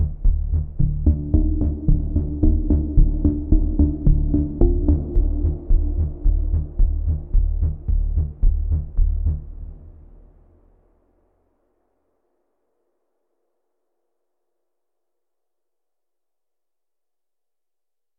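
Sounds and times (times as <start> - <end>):
background music: 0.0 - 10.6.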